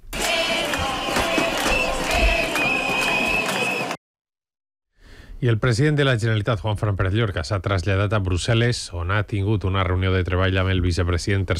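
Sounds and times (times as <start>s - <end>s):
teachers' protest march crowd noise in València: 0.0s - 4.0s
speech: 5.4s - 11.5s.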